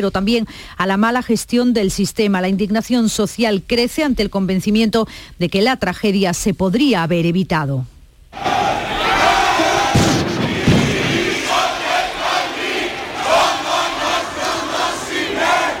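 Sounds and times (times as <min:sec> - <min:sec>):
speech: 0:00.0 - 0:08.6
crowd of protesters shouting and chanting outside a railway operator: 0:08.4 - 0:15.7
dull thuds: 0:09.6 - 0:12.2.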